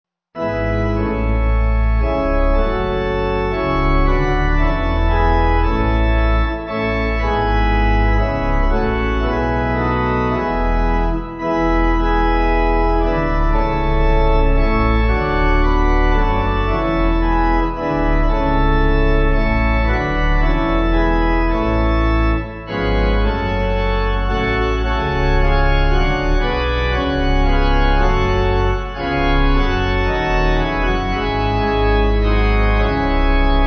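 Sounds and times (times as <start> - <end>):
pipe organ: 0.4 - 33.6.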